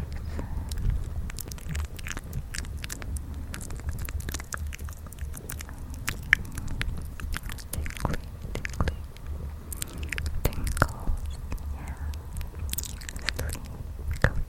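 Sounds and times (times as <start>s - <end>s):
steady low rumble: 0.0s - 14.4s
wet mouth clicks, smacks and chewing noises: 0.0s - 14.4s.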